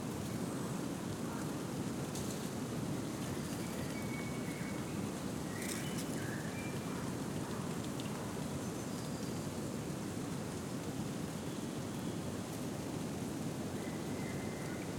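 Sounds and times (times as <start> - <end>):
gentle wind in a deciduous forest at noon in spring: 0.0 - 14.9.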